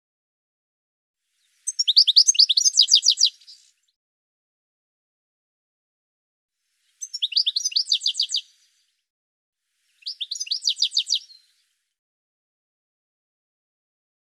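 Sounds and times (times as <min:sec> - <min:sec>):
bird chirping: 0:01.4 - 0:03.9, 0:06.8 - 0:08.9, 0:09.8 - 0:11.8.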